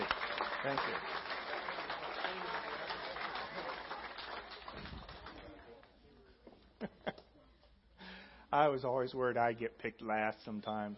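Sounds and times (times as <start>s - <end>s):
audience round of applause: 0.0s - 5.6s
speech: 0.6s - 1.3s, 8.5s - 10.9s
laughter: 6.7s - 7.6s.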